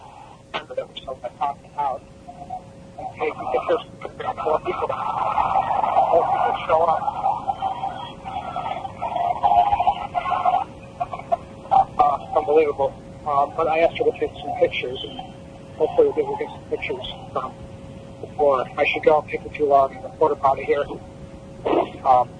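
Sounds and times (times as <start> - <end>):
speech: 0.7 - 2.2, 3.0 - 5.5, 12.4 - 17.6, 18.4 - 21.1, 22.0 - 22.3
laughter: 3.0 - 12.8, 15.8 - 17.5
crowd of prisoners chanting across a prison: 3.1 - 11.3.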